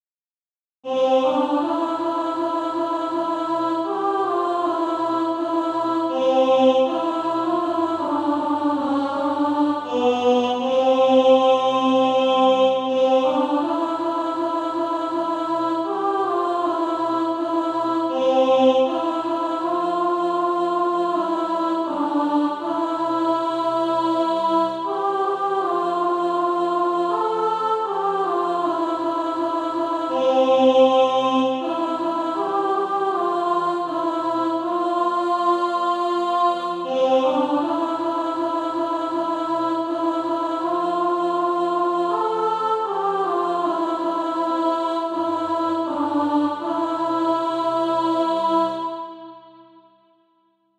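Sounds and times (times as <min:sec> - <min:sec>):
alto voice singing practice music: 0:00.8 - 0:49.9.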